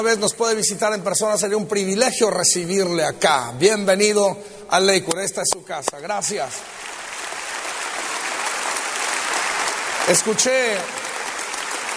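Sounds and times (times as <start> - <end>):
speech: 0.0 - 7.0, 10.1 - 11.0
church congregation applauding: 5.1 - 11.9.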